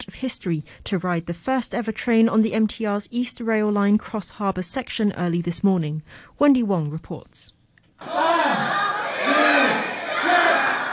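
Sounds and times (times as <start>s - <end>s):
speech: 0.0s - 9.6s
excited crowd of railway fans cheering: 8.0s - 10.9s.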